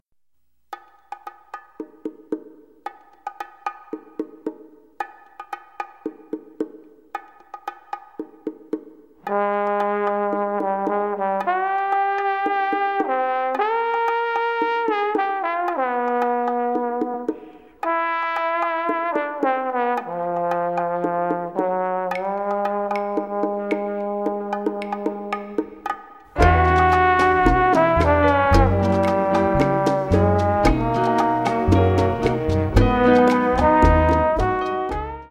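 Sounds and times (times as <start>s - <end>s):
jazz orchestra: 9.3s - 25.6s, 26.4s - 35.2s.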